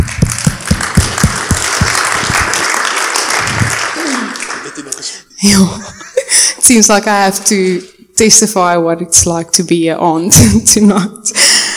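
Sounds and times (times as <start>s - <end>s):
audience applause welcoming a speaker: 0.0s - 5.2s
laughter: 1.4s - 6.6s
speech: 5.4s - 11.6s.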